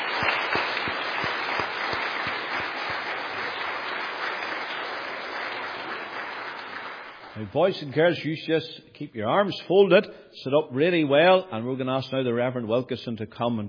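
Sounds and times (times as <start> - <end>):
audience applause for children: 0.0 - 7.5
speech: 7.4 - 13.6.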